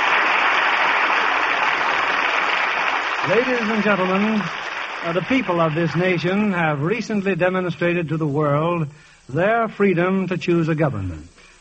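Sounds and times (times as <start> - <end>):
audience applause: 0.0 - 6.5
speech: 3.2 - 11.4.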